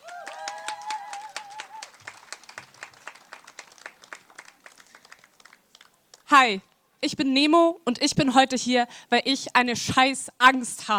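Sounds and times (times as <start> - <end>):
audience applause at rally: 0.0 - 6.0
speech: 6.3 - 10.9.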